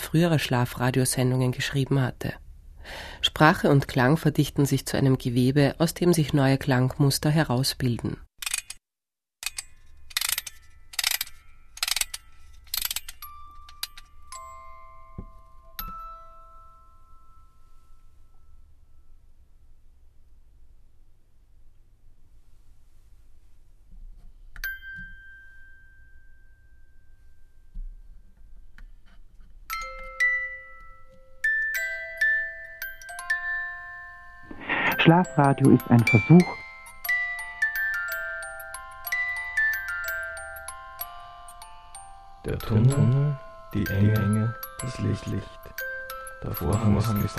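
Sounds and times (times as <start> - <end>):
speech: 0.1 - 8.3, 35.1 - 36.6, 42.5 - 45.8, 46.4 - 47.3
music box melody: 10.4 - 19.0, 24.6 - 27.3, 29.7 - 47.3.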